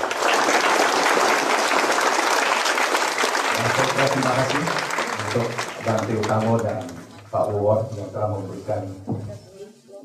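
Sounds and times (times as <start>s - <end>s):
audience applause for two speakers at the close of a talk: 0.0s - 7.3s
speech: 3.6s - 9.4s.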